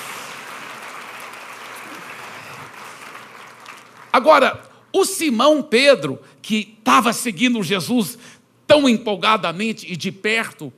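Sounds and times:
audience applause: 0:00.0 - 0:04.4
speech: 0:04.2 - 0:10.7.

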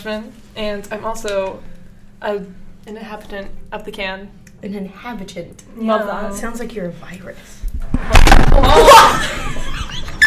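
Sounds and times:
speech: 0:00.0 - 0:09.4
microphone being knocked over: 0:07.8 - 0:08.8
laughter: 0:08.8 - 0:10.2.

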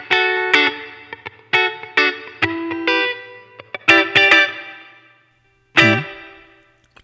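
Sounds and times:
distorted electric guitar through chamber reverb effect: 0:00.0 - 0:04.9, 0:05.8 - 0:07.0.

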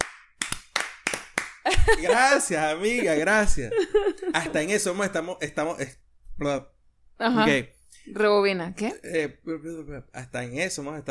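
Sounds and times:
hand clapping: 0:00.0 - 0:02.2
laughter: 0:01.7 - 0:05.1
speech: 0:01.9 - 0:11.0.

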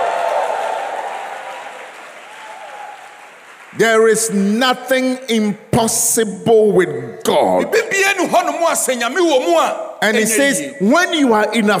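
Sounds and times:
audience clapping and shouting: 0:00.0 - 0:04.5
speech: 0:03.8 - 0:11.7.

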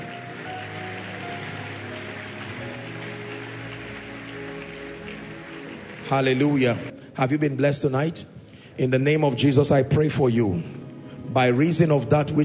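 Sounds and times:
audience applause: 0:00.0 - 0:06.9
speech: 0:06.1 - 0:12.4.

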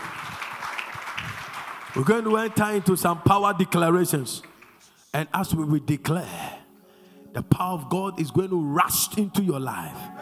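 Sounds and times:
crowd clapping: 0:00.0 - 0:05.1
speech: 0:02.0 - 0:04.5, 0:05.1 - 0:06.4, 0:07.3 - 0:10.1.

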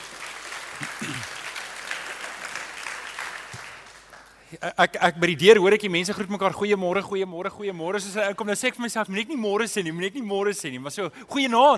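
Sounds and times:
audience applause: 0:00.0 - 0:04.4
speech: 0:04.5 - 0:11.7.

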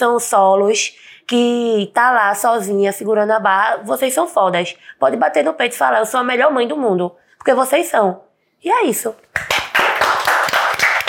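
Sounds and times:
speech: 0:00.0 - 0:09.5
people clapping hands: 0:09.3 - 0:11.0.

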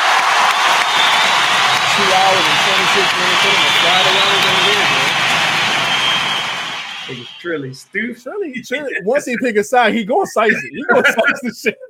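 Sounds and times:
crowd applause: 0:00.0 - 0:07.6
faint cheer: 0:00.0 - 0:08.4
laughter: 0:01.8 - 0:05.1, 0:08.3 - 0:11.8
speech: 0:02.0 - 0:05.0, 0:07.1 - 0:11.8.

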